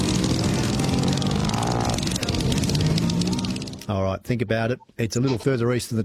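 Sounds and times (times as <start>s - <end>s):
engine motor running: 0.0s - 3.9s
speech: 3.9s - 6.0s.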